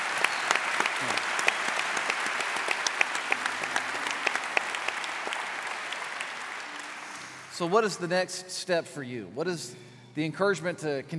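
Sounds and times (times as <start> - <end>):
crowd applauding: 0.0 - 7.9
speech: 7.6 - 11.1.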